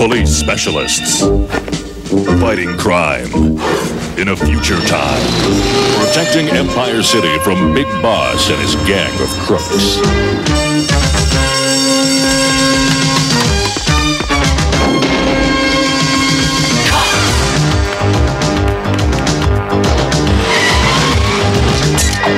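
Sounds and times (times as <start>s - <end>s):
cartoon TV show theme intro: 0.0s - 22.3s
speech: 0.1s - 11.9s
squealing tire-like sound effects: 4.6s - 12.8s, 15.0s - 17.7s, 20.4s - 22.3s.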